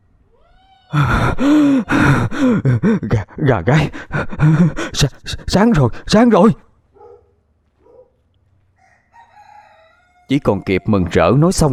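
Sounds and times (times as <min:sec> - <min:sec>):
man panting heavily after running down a mountain: 0:00.9 - 0:06.1
speech: 0:00.9 - 0:06.6, 0:10.3 - 0:11.7.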